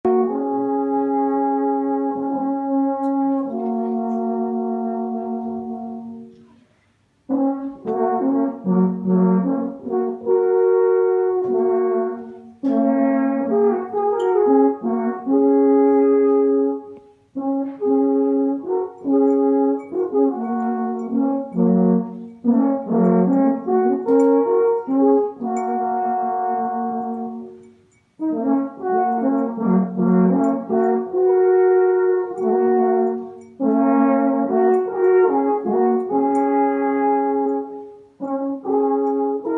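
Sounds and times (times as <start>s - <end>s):
alphorn: 0.0s - 39.5s.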